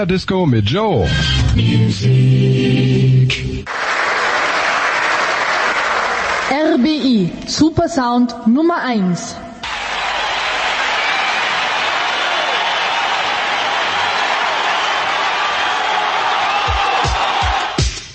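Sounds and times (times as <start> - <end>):
speech: 0.0 - 3.8, 6.5 - 9.4
applause: 3.7 - 6.8, 9.6 - 17.8.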